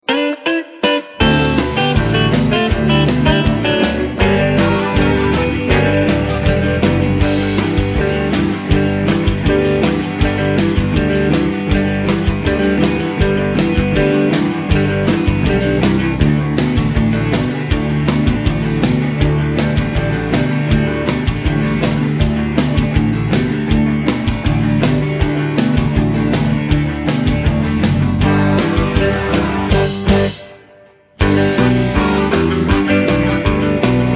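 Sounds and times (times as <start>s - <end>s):
backing track music without backing vocals: 0.0s - 34.1s.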